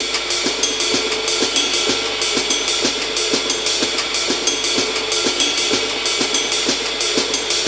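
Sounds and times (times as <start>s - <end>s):
classic drum breaks at 125 BPM: 0.0s - 7.6s.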